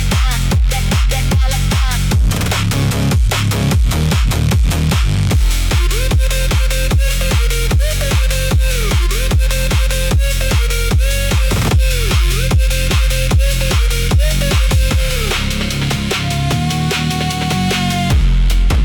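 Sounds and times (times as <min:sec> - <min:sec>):
workout music at 150 BPM: 0:00.0 - 0:18.8.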